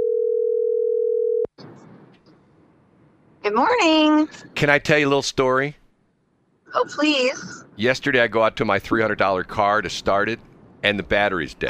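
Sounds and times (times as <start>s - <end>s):
telephone dial tone: 0.0s - 1.5s
speech: 3.5s - 5.8s, 6.7s - 11.6s.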